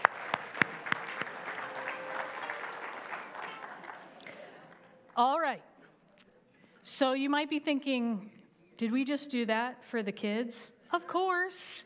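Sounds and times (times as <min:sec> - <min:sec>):
audience applause: 0:00.0 - 0:05.0
speech: 0:05.2 - 0:05.7, 0:06.9 - 0:11.8.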